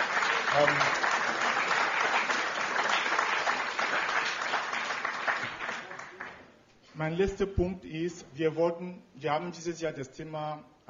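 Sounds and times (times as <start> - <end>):
audience applause: 0.0 - 6.4
speech: 0.6 - 1.1, 7.0 - 10.8.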